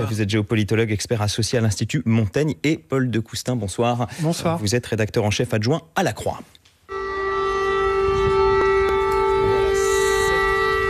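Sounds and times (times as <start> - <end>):
speech: 0.0 - 6.7
air raid alarm siren in Kyiv wailing: 6.9 - 10.8.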